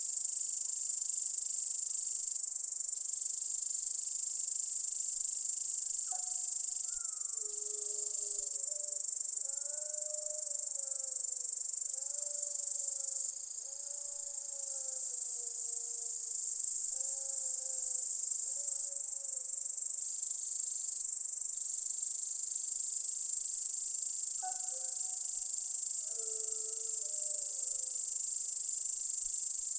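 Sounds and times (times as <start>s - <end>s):
crickets chirping at night: 0.0s - 29.7s
dog barking at night: 24.4s - 25.2s.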